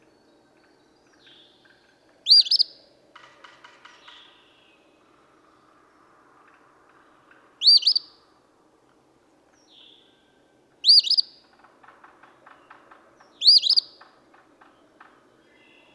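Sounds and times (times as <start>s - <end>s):
Eastern phoebe singing: 0.0s - 2.8s, 3.9s - 8.2s, 9.5s - 11.5s, 12.4s - 14.0s, 14.8s - 15.9s.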